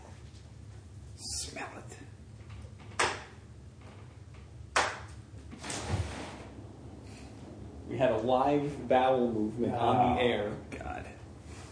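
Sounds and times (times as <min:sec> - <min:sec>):
window being opened with scraping thumps: 0:05.5 - 0:06.6
speech: 0:08.0 - 0:11.1.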